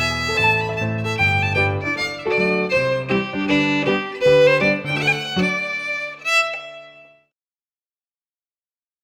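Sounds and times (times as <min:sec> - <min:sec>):
piano: 0:00.0 - 0:07.2
fiddle: 0:00.0 - 0:07.3.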